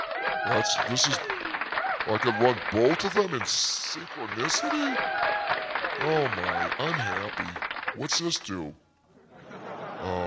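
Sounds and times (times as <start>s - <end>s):
cheering and whooping voices: 0.0s - 3.3s, 4.0s - 7.4s
laughter: 0.0s - 8.1s, 9.2s - 10.2s
canned applause sound effect: 0.0s - 8.6s
speech: 0.4s - 1.4s, 2.1s - 8.8s, 10.0s - 10.2s.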